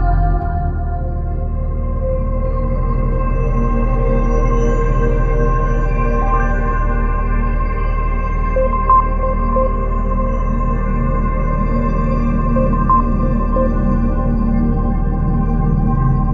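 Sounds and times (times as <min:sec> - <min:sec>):
ambience: 0:00.0 - 0:16.3.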